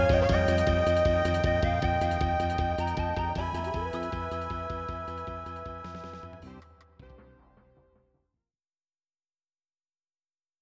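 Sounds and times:
ending sequence music on Roland LA synthesizer: 0.0 - 7.7.

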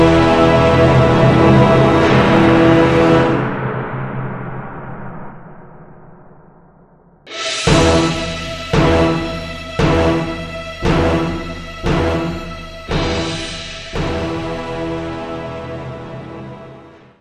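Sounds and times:
death music: 0.0 - 3.8, 7.3 - 17.1.

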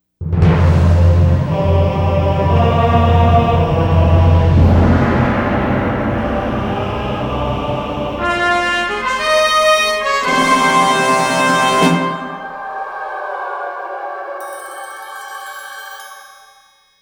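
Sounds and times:
boss intro music: 0.7 - 12.8.

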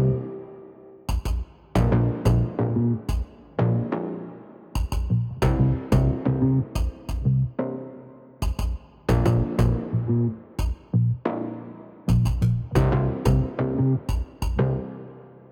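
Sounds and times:
bass: 0.0 - 0.3, 1.8 - 4.0, 4.9 - 7.6, 9.1 - 11.3, 12.1 - 14.9.

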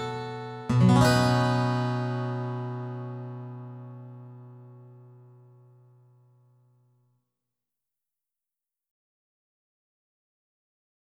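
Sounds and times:
guitar: 0.0 - 6.4.

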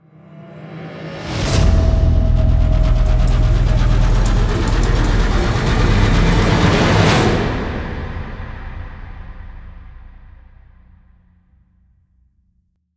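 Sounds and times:
modulated ramp stinger: 1.6 - 10.4.

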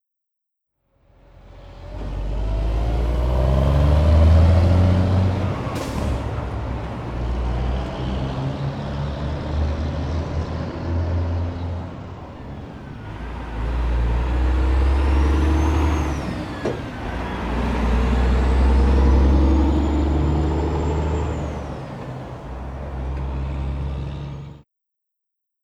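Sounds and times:
traffic on the Golden Gate Bridge: 1.1 - 24.6.

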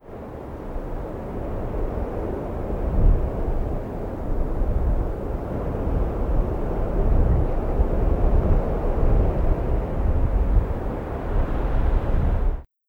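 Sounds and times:
wind: 0.0 - 12.7.

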